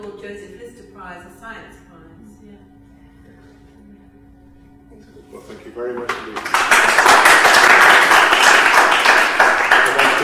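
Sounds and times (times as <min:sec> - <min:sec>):
speech: 0:00.0 - 0:02.7, 0:05.0 - 0:08.2
audience clapping: 0:06.0 - 0:10.2.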